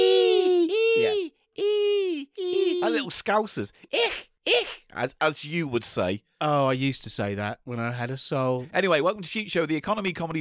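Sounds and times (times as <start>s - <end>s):
person imitating baby pigeon squeals: 0.0s - 3.1s, 3.9s - 4.9s
speech: 2.9s - 10.4s.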